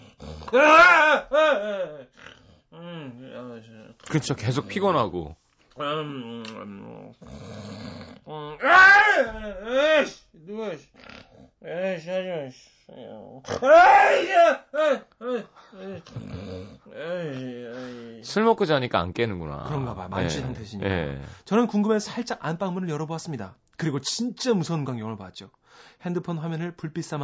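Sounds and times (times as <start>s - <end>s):
voice imitating strange snoring: 0.0s - 0.6s, 2.1s - 3.9s, 6.1s - 8.6s, 10.9s - 11.7s, 12.9s - 13.7s, 15.8s - 18.2s
speech: 0.5s - 2.2s, 3.4s - 27.2s.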